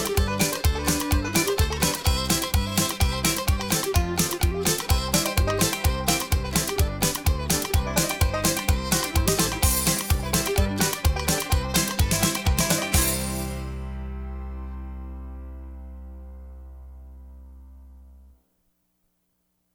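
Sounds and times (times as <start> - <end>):
hoedown square dance music: 0.0 - 15.5.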